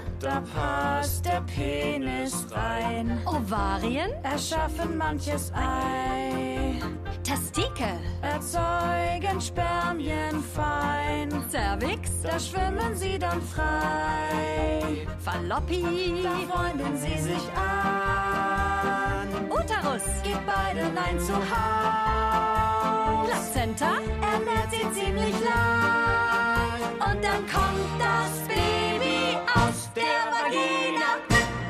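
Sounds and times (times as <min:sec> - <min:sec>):
person singing: 0:00.2 - 0:07.0, 0:08.2 - 0:31.6.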